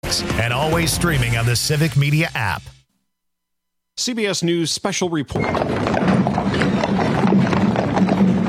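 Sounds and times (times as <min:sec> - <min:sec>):
speech: 0:00.3 - 0:02.8, 0:04.0 - 0:07.0
horse-drawn caisson hooves clip-clopping on pavement: 0:05.4 - 0:08.4
outdoor rumble: 0:05.6 - 0:08.4.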